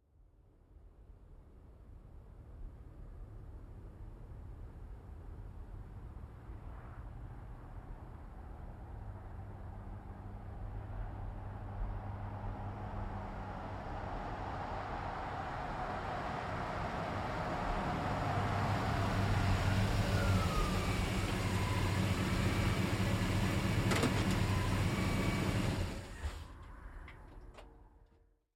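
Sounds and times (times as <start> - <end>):
GMC Savana truck driving, stopping and slowing: 10.2 - 28.3.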